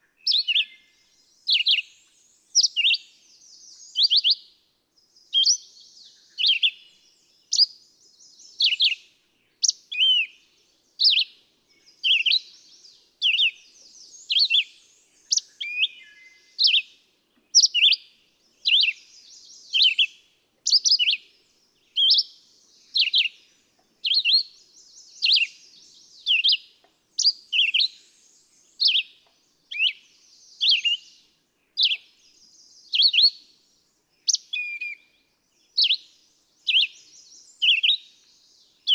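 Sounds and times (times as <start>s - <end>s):
red-eyed vireo singing in Quabbin Park Massachusetts: 0.1s - 33.4s, 34.2s - 38.9s.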